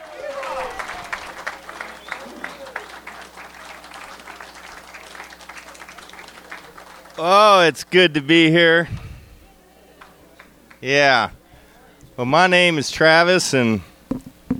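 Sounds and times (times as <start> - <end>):
audience round of applause: 0.0 - 7.4
speech: 7.2 - 9.0, 10.8 - 11.4, 12.2 - 13.9.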